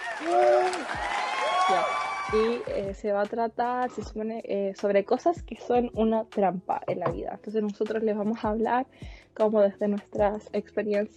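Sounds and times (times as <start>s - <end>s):
fake applause sound effect: 0.0s - 2.8s
speech: 0.2s - 1.1s, 1.7s - 11.1s.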